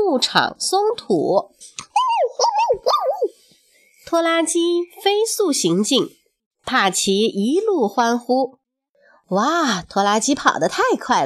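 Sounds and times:
speech: 0.2 - 1.7, 4.1 - 8.6, 9.3 - 11.2
human voice imitating a sheepdog barking: 1.9 - 3.3.

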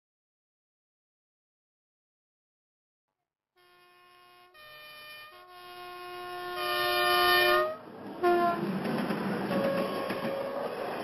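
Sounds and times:
train horn: 3.6 - 8.7, 9.5 - 10.8
low rumble of the moving train: 5.5 - 11.0.

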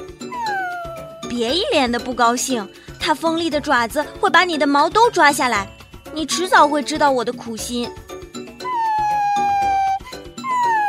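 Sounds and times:
dog whining and howling: 0.2 - 1.3, 8.6 - 10.8
speech: 1.3 - 8.0.

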